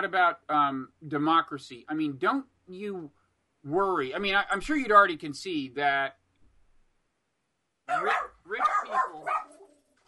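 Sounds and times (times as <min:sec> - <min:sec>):
speech: 0:00.0 - 0:06.2, 0:07.9 - 0:09.4
dogs barking at the door: 0:07.9 - 0:09.7.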